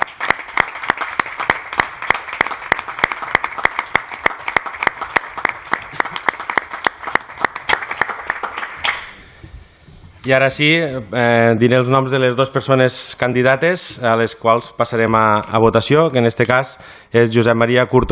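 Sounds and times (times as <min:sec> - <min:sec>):
applause: 0:00.0 - 0:09.3
speech: 0:10.3 - 0:18.1.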